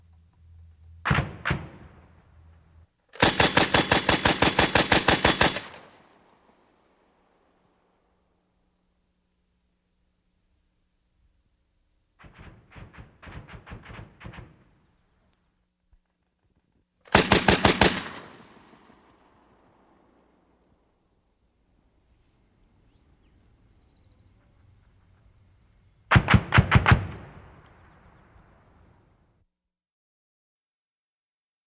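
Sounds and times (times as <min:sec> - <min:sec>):
M60 machine gun fire outdoors: 0:01.1 - 0:02.1, 0:03.2 - 0:06.0, 0:12.2 - 0:14.8, 0:17.1 - 0:19.0, 0:26.1 - 0:27.6.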